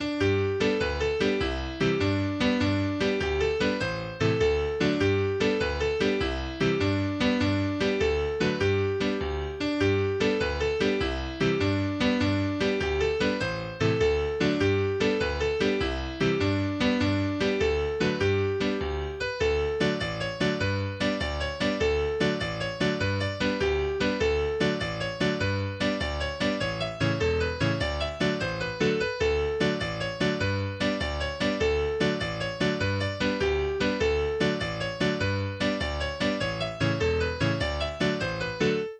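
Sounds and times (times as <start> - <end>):
English folk dance tunes: 0.4 - 38.9.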